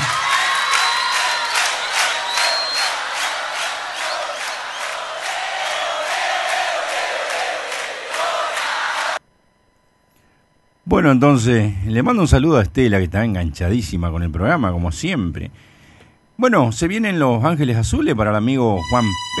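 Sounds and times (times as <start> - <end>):
audience clapping: 0.0 - 9.2
speech: 11.0 - 15.7, 16.4 - 19.3.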